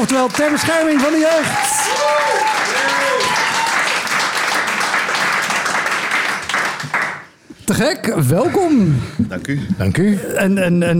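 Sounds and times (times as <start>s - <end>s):
speech: 0.0s - 3.4s, 7.7s - 10.9s
loud audience applause: 0.0s - 7.3s.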